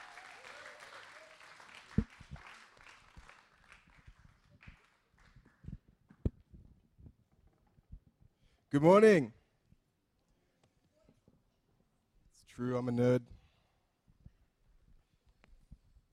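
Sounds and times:
audience applause: 0:00.0 - 0:05.6
speech: 0:08.8 - 0:09.4, 0:12.6 - 0:13.4.

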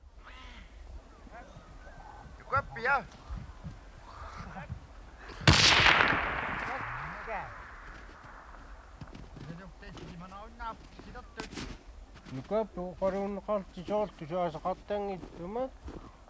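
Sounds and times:
people talking quietly: 0:00.0 - 0:16.2
speech: 0:02.8 - 0:03.2, 0:07.3 - 0:07.6, 0:09.6 - 0:16.0
gunshot with long rumble: 0:05.3 - 0:09.2.

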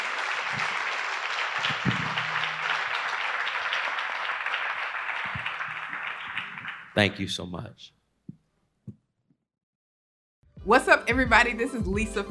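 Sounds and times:
audience applause: 0:00.0 - 0:07.2
speech: 0:07.0 - 0:08.0, 0:10.6 - 0:12.2.

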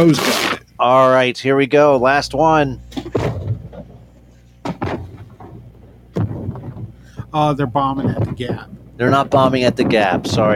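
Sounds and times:
speech: 0:00.0 - 0:03.0, 0:07.3 - 0:10.5
fireworks exploding: 0:04.8 - 0:10.5.

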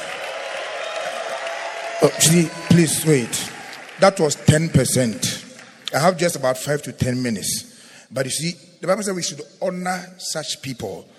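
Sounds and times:
people clapping: 0:00.0 - 0:06.4
speech: 0:02.0 - 0:05.3, 0:05.9 - 0:11.1.

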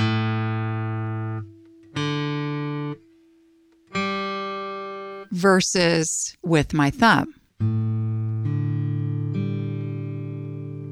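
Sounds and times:
bright tinny chords strummed with a flat pick: 0:00.0 - 0:05.3, 0:07.5 - 0:10.9
speech: 0:05.3 - 0:07.8.

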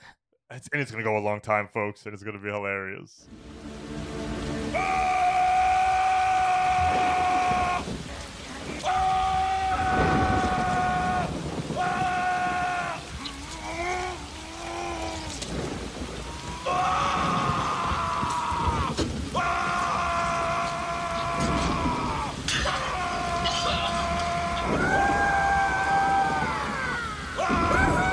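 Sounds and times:
speech: 0:00.5 - 0:03.6
hiss: 0:03.3 - 0:28.1
man screaming in a movie clip: 0:04.7 - 0:07.9, 0:08.8 - 0:15.6, 0:16.2 - 0:28.1.

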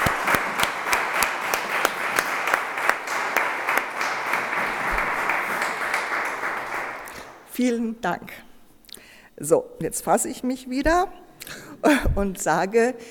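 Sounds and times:
audience applause: 0:00.0 - 0:07.4
speech: 0:07.6 - 0:08.5, 0:09.4 - 0:13.0.

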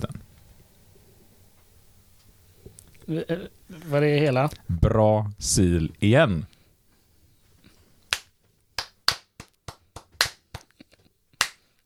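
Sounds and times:
speech: 0:03.1 - 0:06.5
person clapping slowly: 0:08.1 - 0:11.7.

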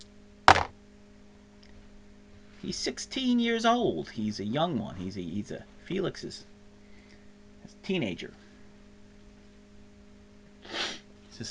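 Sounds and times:
low steady hum: 0:00.0 - 0:11.4
100-sided die dropping onto a hard surface: 0:00.5 - 0:00.7
speech: 0:02.6 - 0:06.5, 0:07.8 - 0:08.4.

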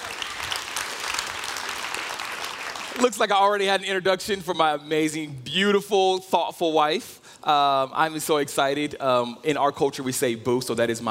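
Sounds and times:
audience clapping: 0:00.0 - 0:03.6
speech: 0:03.0 - 0:11.0.

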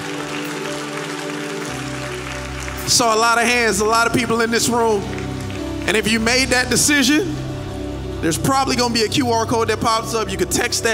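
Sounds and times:
audience applause in church: 0:00.0 - 0:06.8
speech: 0:02.9 - 0:05.2, 0:05.9 - 0:07.4, 0:08.2 - 0:10.9.

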